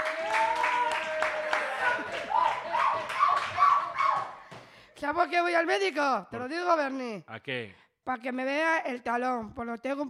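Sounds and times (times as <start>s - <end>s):
audience applause: 0.0s - 4.5s
speech: 5.0s - 10.0s.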